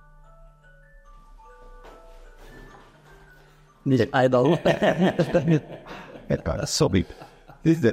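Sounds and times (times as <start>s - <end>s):
alarm clock ringing with electronic melody: 0.0s - 5.5s
speech: 3.8s - 7.9s
laughter: 4.4s - 7.9s.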